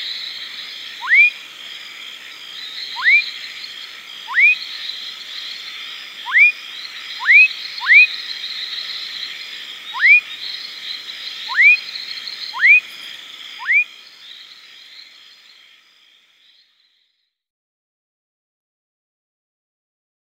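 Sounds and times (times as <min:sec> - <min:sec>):
continuous buzzing insect background: 0:00.0 - 0:15.0
fuscous foam frog rising whistle: 0:03.0 - 0:03.2, 0:04.3 - 0:04.6, 0:06.2 - 0:06.6, 0:07.2 - 0:08.1, 0:10.0 - 0:10.2, 0:11.5 - 0:11.8, 0:12.5 - 0:12.9, 0:13.6 - 0:13.9.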